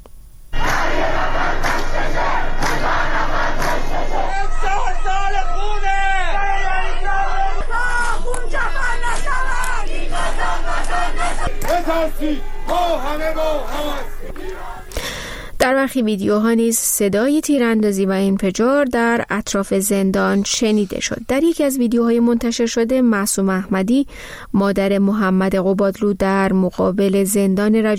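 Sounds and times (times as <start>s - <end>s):
crowd chanting slogans outside a prison: 0.6s - 15.0s
speech: 11.7s - 14.4s, 15.8s - 27.9s.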